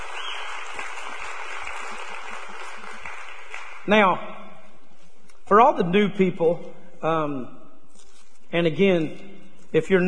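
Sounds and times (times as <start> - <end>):
audience applause: 0.0 - 3.9
speech: 3.9 - 4.3, 5.5 - 7.6, 8.5 - 10.0.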